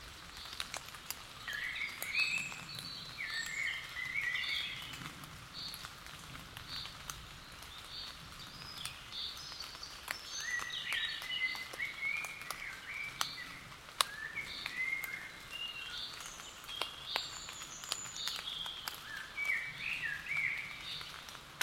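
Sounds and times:
common blackbird Turdus merula singing: 1.4 - 5.0, 7.8 - 21.2.

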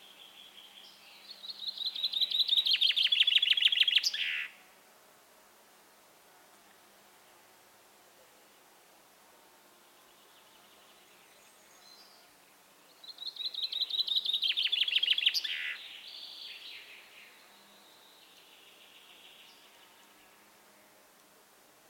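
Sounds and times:
common chaffinch song: 0.0 - 4.6, 9.8 - 20.9.

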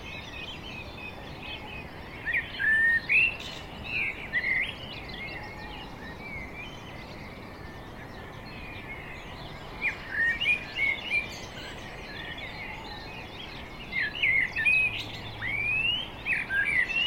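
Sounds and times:
Turdus merula singing: 0.0 - 17.0.

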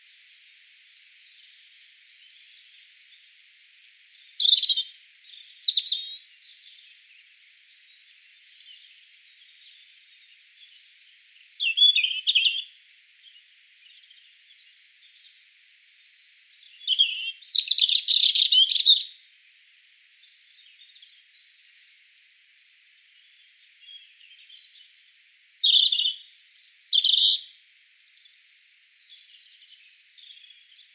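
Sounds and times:
European robin thin whistles and trills: 0.7 - 6.2, 11.3 - 12.7, 16.4 - 19.7, 24.9 - 27.4.

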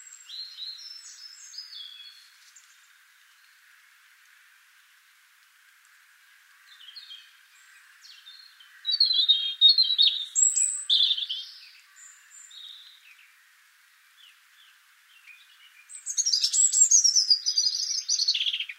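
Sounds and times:
European robin singing: 0.0 - 3.6, 6.7 - 13.4, 14.2 - 18.7.

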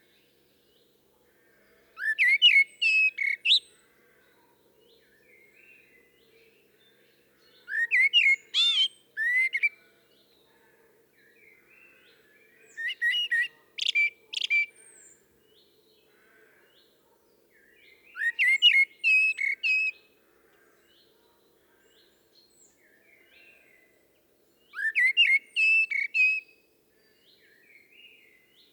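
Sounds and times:
common blackbird singing: 2.0 - 3.8, 7.4 - 10.4, 11.2 - 15.7, 17.6 - 20.0, 24.6 - 28.6.

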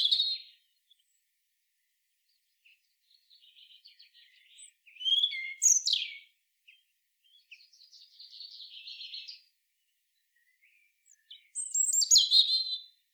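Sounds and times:
European robin Erithacus rubecula singing high sweet whistles and jumbled trills: 0.0 - 1.2, 2.7 - 9.5, 10.2 - 13.0.

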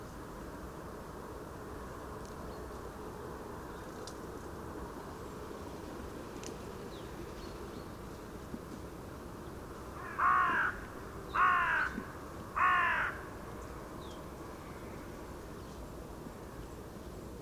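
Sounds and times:
Carrion crow Corvus corone giving short harsh caws: 10.0 - 13.4.

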